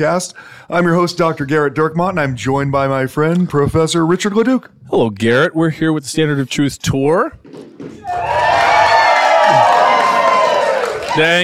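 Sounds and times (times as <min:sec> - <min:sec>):
speech: 0:00.0 - 0:08.7, 0:11.2 - 0:11.4
audience cheering with high whoops: 0:08.0 - 0:11.4.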